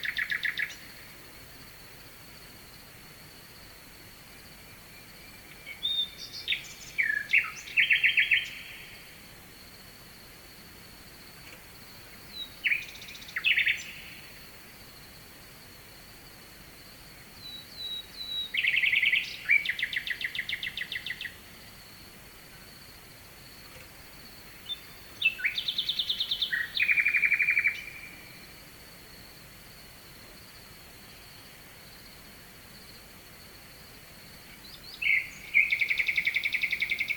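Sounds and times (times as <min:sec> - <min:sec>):
nightingale singing: 0:00.0 - 0:01.2, 0:04.6 - 0:09.2, 0:11.4 - 0:14.4, 0:17.4 - 0:21.6, 0:24.4 - 0:28.5, 0:34.4 - 0:37.1.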